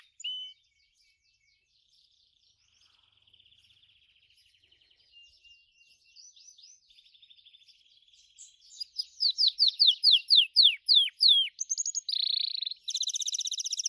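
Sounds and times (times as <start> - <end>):
Gloster canary singing: 0.0 - 0.7, 5.2 - 13.8.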